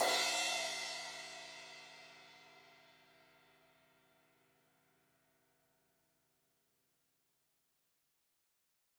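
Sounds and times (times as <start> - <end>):
16-inch crash cymbal hit on the edge: 0.0 - 1.8.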